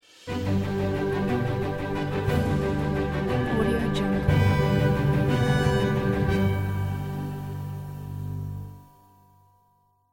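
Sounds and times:
noble epic outro logo music: 0.1s - 8.9s.

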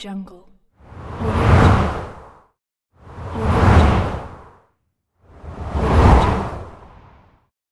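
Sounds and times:
swooshes: 0.9s - 2.4s, 3.0s - 4.6s, 5.3s - 7.3s.

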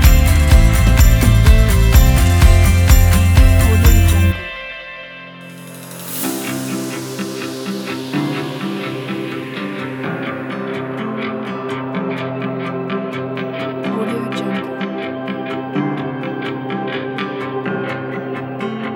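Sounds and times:
inspiring motivational upbeat indie pop: 0.0s - 4.6s.

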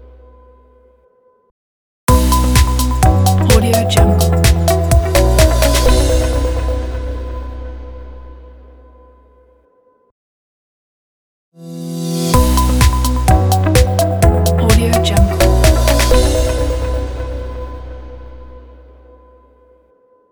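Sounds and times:
audio logo: 2.1s - 8.9s, 11.6s - 19.4s.

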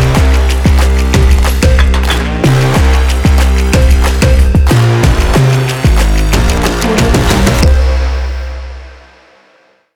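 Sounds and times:
energetic stomp percussion for fashion and sport: 0.0s - 7.8s.

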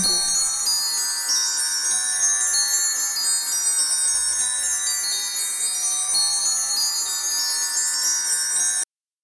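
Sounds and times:
chaotic sci-fi bells: 0.0s - 8.8s.

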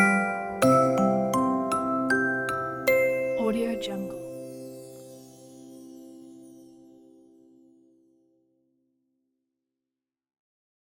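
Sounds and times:
Christmas music box melody: 0.0s - 6.7s.

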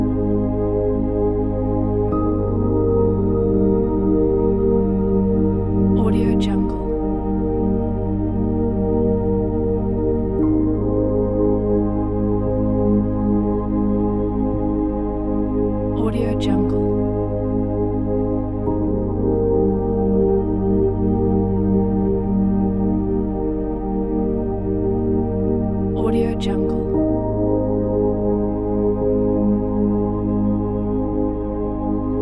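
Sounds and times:
soulful meditation soundscape: 0.0s - 32.2s.

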